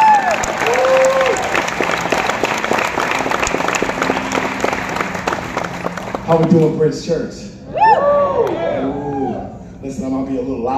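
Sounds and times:
whoops and cheers: 0:00.0 - 0:01.7, 0:07.7 - 0:09.6
crowd applause: 0:00.0 - 0:06.9
speech: 0:06.3 - 0:07.5, 0:09.9 - 0:10.7.

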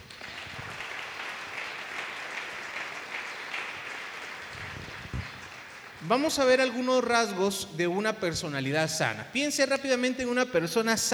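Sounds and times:
crowd clapping: 0:00.0 - 0:06.8
speech: 0:06.1 - 0:11.1.

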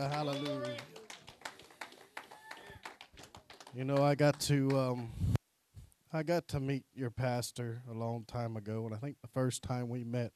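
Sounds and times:
speech: 0:00.0 - 0:01.0, 0:03.7 - 0:05.3, 0:06.1 - 0:10.3
audience applause: 0:00.0 - 0:04.9.

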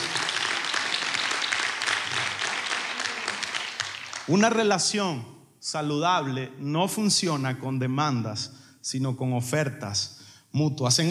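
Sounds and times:
audience applause: 0:00.0 - 0:04.5
speech: 0:04.3 - 0:11.1.

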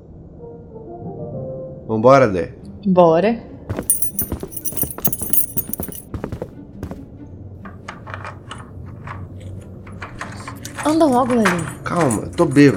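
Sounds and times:
speech: 0:01.9 - 0:03.8, 0:10.9 - 0:12.7
key rattling and turning in a door lock: 0:03.9 - 0:06.0.

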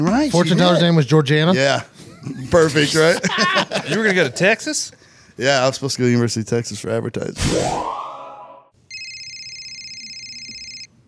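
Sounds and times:
speech: 0:00.0 - 0:08.0
laughter: 0:02.1 - 0:04.8
phone alert chime: 0:08.9 - 0:10.9.

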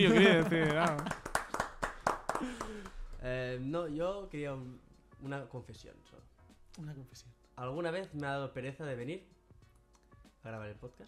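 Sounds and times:
speech: 0:00.0 - 0:01.2, 0:03.2 - 0:09.3, 0:10.4 - 0:11.0
laughter: 0:00.0 - 0:01.3
applause: 0:00.0 - 0:03.0.

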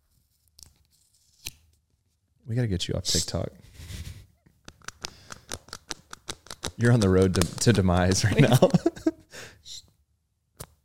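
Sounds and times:
speech: 0:02.5 - 0:03.7, 0:06.8 - 0:09.1
sticker being peeled off: 0:04.7 - 0:08.2
laughter: 0:07.2 - 0:09.2.

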